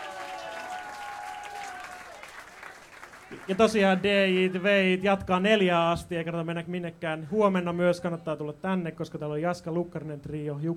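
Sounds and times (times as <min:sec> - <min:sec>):
audience applause: 0:00.0 - 0:04.7
speech: 0:03.3 - 0:10.7.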